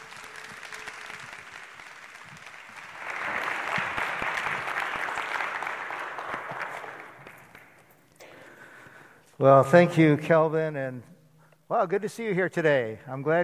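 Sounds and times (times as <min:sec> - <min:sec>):
church congregation applauding a guest pastor: 0:00.0 - 0:08.2
speech: 0:09.4 - 0:11.1, 0:11.7 - 0:13.4.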